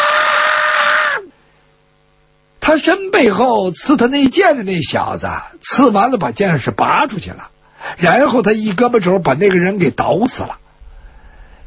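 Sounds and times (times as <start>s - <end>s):
storyteller imitating the furious roar of a dying man struck by an arrow: 0.0s - 1.3s
speech: 2.7s - 10.6s.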